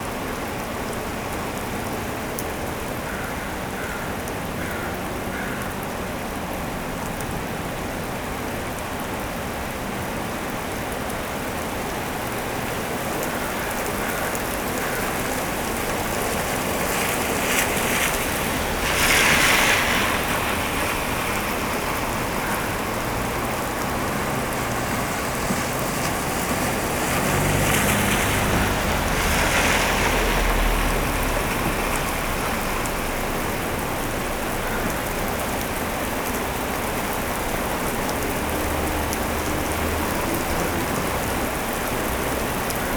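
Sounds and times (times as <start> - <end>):
rain in Oregon: 0.0 - 42.9
crows cawing: 3.0 - 5.8, 13.2 - 15.5, 22.3 - 23.7, 34.6 - 35.1
cars passing: 10.2 - 42.9.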